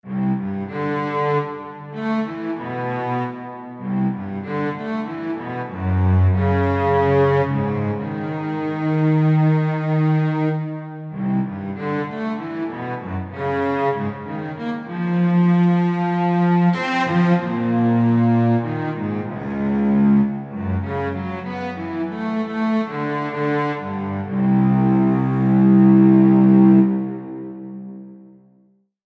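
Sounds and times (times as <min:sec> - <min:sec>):
circle of fifths music: 0:00.0 - 0:29.0.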